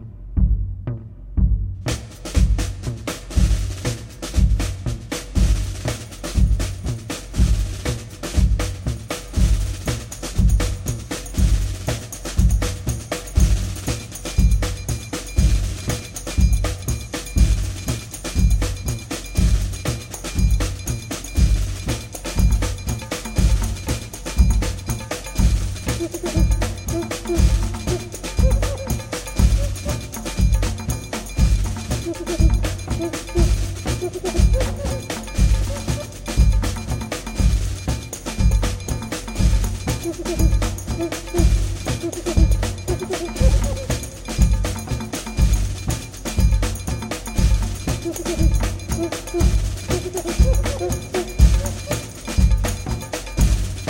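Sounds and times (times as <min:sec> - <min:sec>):
carnival march music: 0:00.4 - 0:53.8.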